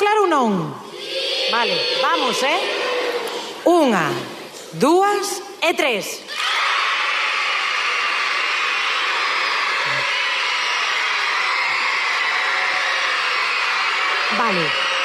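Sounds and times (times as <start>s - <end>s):
speech: 0.3s - 0.9s, 1.5s - 2.8s, 3.6s - 6.5s, 14.4s - 14.8s
people shouting: 0.9s - 3.5s, 6.3s - 15.0s.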